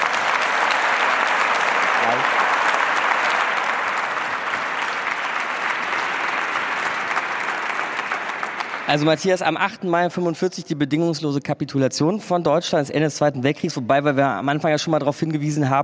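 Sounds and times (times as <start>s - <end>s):
audience applause: 0.0s - 9.6s
speech: 2.0s - 2.5s, 8.9s - 15.8s.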